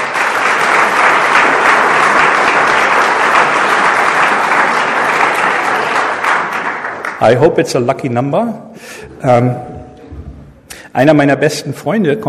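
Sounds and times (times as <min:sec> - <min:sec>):
audience applause: 0:00.0 - 0:07.5
speech: 0:07.2 - 0:09.7, 0:10.9 - 0:12.2.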